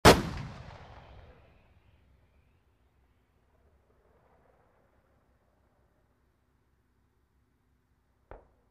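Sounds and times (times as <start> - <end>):
tank cannon firing: 0.0 - 1.6.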